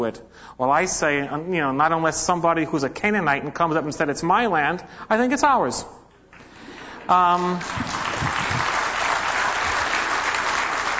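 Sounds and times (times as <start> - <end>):
speech: 0.0 - 6.0, 7.1 - 8.0
audience clapping: 6.3 - 10.9.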